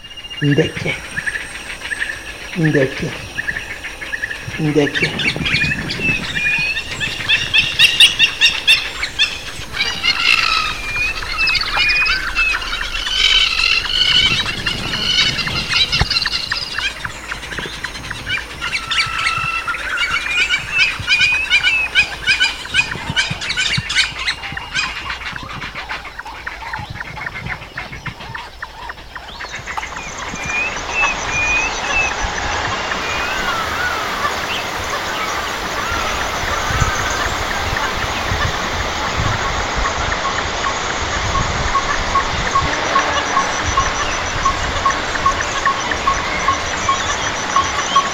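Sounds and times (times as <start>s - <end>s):
steady rushing like flowing water: 0.0s - 27.4s, 29.4s - 48.1s
dense overlapping bird calls and chirps: 0.0s - 48.1s
speech: 0.4s - 1.2s, 2.6s - 3.3s, 4.5s - 6.1s.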